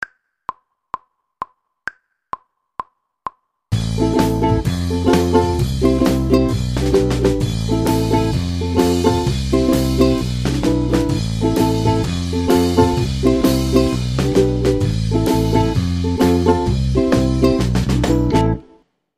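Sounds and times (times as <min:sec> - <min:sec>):
ukulele: 0:03.8 - 0:18.8.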